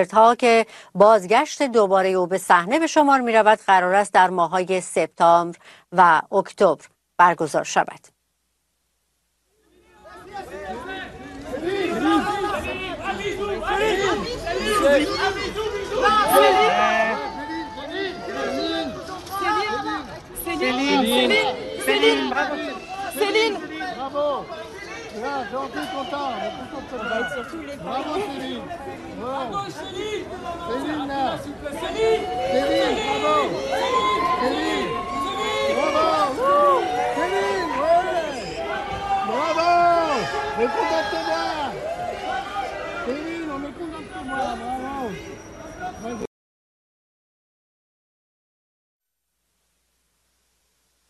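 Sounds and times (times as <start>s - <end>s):
speech: 0.0s - 8.1s, 13.8s - 17.0s, 20.6s - 24.6s, 25.2s - 34.9s, 39.4s - 41.7s, 45.9s - 46.3s
crowd of fans chattering in Paris: 9.6s - 46.3s.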